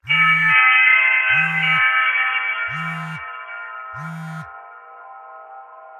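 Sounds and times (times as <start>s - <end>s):
cellphone ringing: 0.0s - 2.0s, 2.7s - 3.3s, 3.9s - 4.6s.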